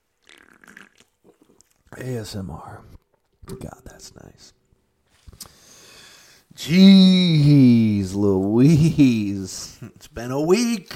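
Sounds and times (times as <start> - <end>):
sip of sparkling water: 0.0 - 1.8
soft gulps: 0.2 - 1.9
speech: 1.9 - 4.6, 6.6 - 10.9.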